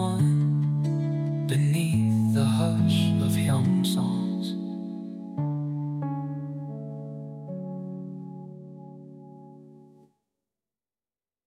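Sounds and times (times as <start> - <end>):
lullaby singing: 0.0 - 5.7.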